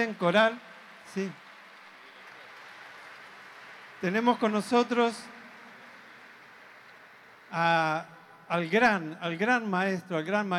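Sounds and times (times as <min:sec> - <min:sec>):
speech: 0:00.0 - 0:01.4, 0:04.0 - 0:05.4, 0:07.5 - 0:10.5
audience applause for a choir: 0:00.0 - 0:07.9.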